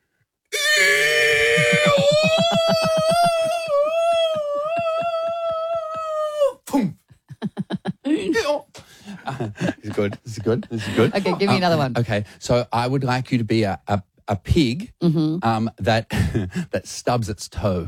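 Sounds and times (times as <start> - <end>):
person imitating a donkey falling out of a plane: 0.5 - 6.6
laughter: 0.7 - 6.4, 7.3 - 11.8
speech: 1.8 - 3.9, 9.4 - 17.8.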